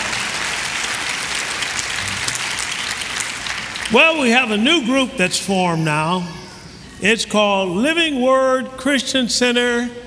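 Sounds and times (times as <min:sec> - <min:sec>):
audience clapping hands: 0:00.0 - 0:04.8
speech: 0:03.9 - 0:06.4, 0:07.0 - 0:10.0.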